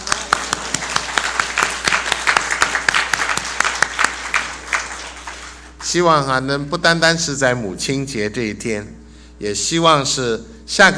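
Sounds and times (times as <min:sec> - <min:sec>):
audience applause: 0:00.0 - 0:05.9
speech: 0:05.9 - 0:10.9.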